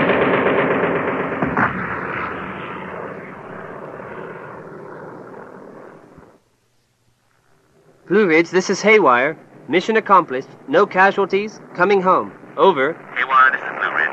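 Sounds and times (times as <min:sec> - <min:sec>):
bomb burst on a bridge: 0:00.0 - 0:06.4
aircraft engine roar in a staged radio-drama effect: 0:00.0 - 0:14.1
speech: 0:08.1 - 0:14.1.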